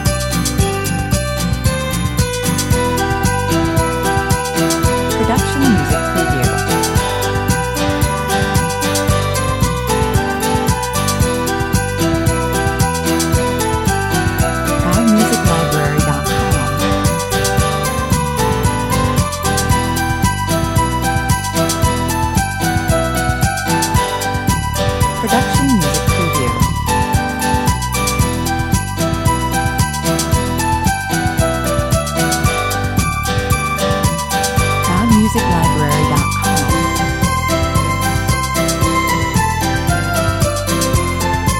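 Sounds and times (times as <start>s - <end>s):
bells ringing: 0.0s - 41.5s.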